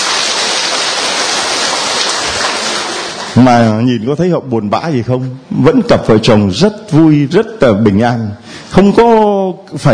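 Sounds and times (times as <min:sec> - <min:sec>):
audience applause: 0:00.0 - 0:03.4
speech: 0:03.4 - 0:09.9.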